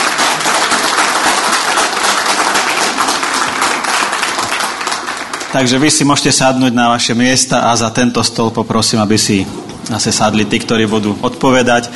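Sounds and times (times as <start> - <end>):
audience applause thanking an improvised band and singers: 0.0 - 6.4
speech: 5.5 - 11.9.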